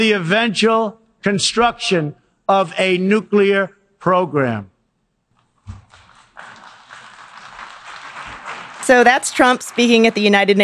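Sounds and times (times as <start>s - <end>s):
speech: 0.0s - 4.7s, 8.9s - 10.6s
scattered, unenthusiastic applause: 5.6s - 10.6s.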